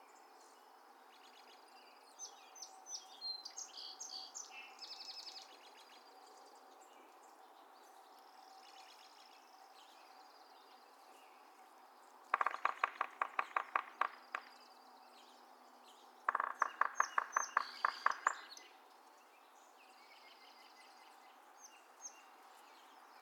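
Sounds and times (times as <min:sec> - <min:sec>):
Yellow-bellied Sapsucker drumming: 0:12.3 - 0:14.6, 0:16.2 - 0:18.6.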